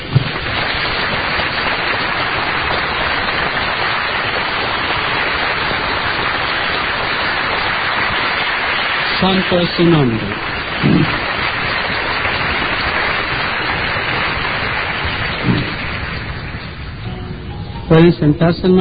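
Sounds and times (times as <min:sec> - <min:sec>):
church audience applause: 0:00.0 - 0:17.1
speech: 0:09.2 - 0:11.2, 0:17.9 - 0:18.7.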